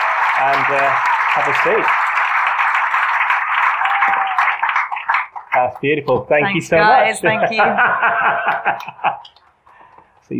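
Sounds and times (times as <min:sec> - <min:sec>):
audience applause: 0:00.0 - 0:06.2
speech: 0:00.4 - 0:02.0, 0:05.6 - 0:09.4
laughter: 0:07.2 - 0:09.4.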